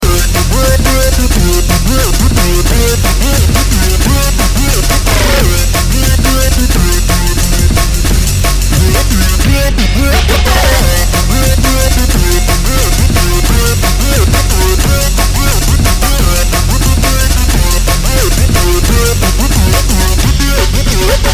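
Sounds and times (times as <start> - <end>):
drum and bass music: 0.0 - 21.3.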